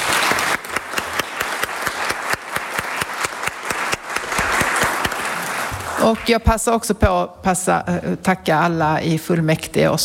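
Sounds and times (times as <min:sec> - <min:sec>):
audience applause: 0:00.0 - 0:06.3
speech: 0:06.0 - 0:10.0.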